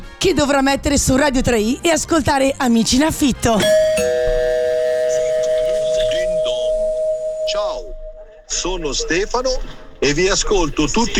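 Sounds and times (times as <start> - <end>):
speech: 0.2 - 4.0, 8.6 - 11.1
doorbell ding-dong chime: 3.6 - 8.4.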